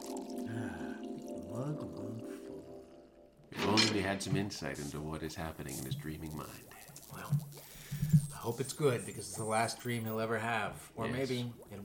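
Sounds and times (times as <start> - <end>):
wine pouring into a glass: 0.0 - 3.1, 5.4 - 9.5
speech: 3.7 - 11.8.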